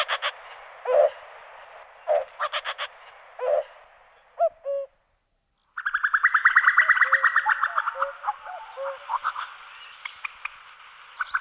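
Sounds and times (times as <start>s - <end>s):
cuckoo calling: 0.0s - 1.3s, 2.0s - 3.8s, 4.4s - 5.0s, 5.8s - 10.4s.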